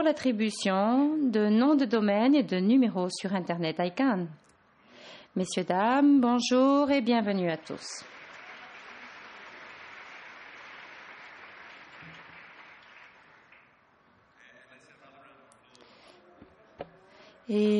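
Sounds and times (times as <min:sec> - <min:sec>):
speech: 0:00.0 - 0:04.4, 0:05.1 - 0:08.2, 0:17.5 - 0:17.7
audience applause: 0:07.6 - 0:13.8.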